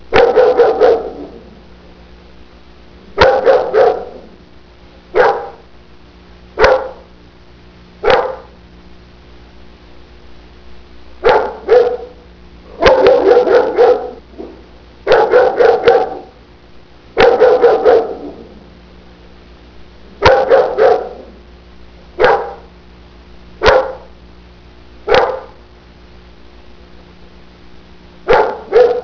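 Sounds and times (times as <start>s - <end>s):
dog: 0.1s - 1.3s, 3.2s - 4.2s, 5.2s - 5.6s, 6.6s - 7.1s, 8.0s - 8.5s, 11.2s - 12.2s, 12.8s - 16.4s, 17.2s - 18.5s, 20.2s - 21.3s, 22.2s - 22.7s, 23.6s - 24.1s, 25.1s - 25.6s, 28.3s - 29.0s.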